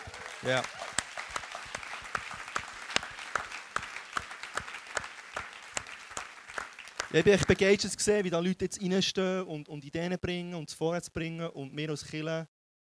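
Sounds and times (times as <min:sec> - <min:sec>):
audience applause: 0:00.0 - 0:08.0
speech: 0:00.4 - 0:00.8, 0:07.1 - 0:12.9.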